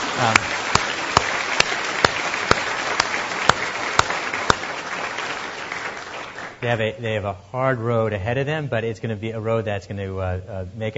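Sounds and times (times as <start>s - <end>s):
audience applause: 0.0s - 6.8s
speech: 0.2s - 0.6s, 6.6s - 10.9s.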